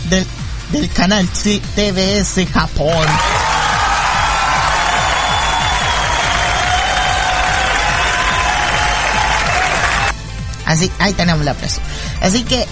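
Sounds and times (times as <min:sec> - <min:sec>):
speech: 0:00.1 - 0:03.4, 0:10.7 - 0:12.6
large crowd applauding and cheering: 0:02.9 - 0:10.2.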